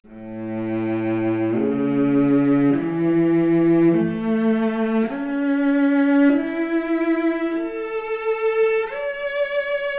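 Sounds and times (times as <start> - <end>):
violoncello arpeggio: 0.0 - 9.9.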